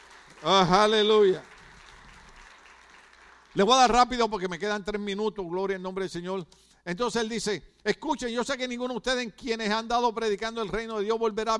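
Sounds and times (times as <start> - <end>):
audience applause: 0.0 - 3.9
speech: 0.4 - 1.5, 3.6 - 11.5.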